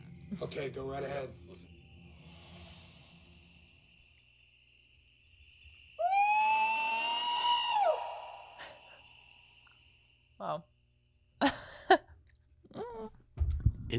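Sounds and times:
faint hiss: 0:00.0 - 0:12.1
speech: 0:00.4 - 0:01.8, 0:10.5 - 0:10.7
purported Bigfoot call from a TV show: 0:06.0 - 0:09.1.

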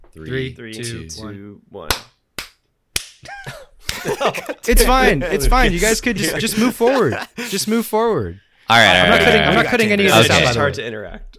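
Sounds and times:
speech: 0:00.1 - 0:02.1, 0:04.0 - 0:11.3
hand clap for audio sync: 0:01.9 - 0:04.2
laughter: 0:03.2 - 0:08.0, 0:08.9 - 0:10.8.

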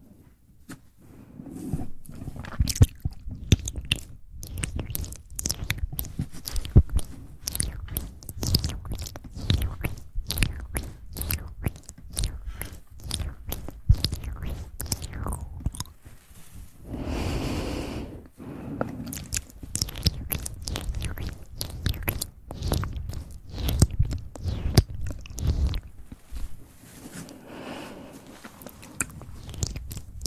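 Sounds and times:
close wet mouth clicks, smacks and crunchy bites: 0:02.4 - 0:16.0, 0:19.0 - 0:26.2, 0:28.4 - 0:30.2
soft breathy hiss: 0:16.8 - 0:19.4, 0:27.0 - 0:29.8.

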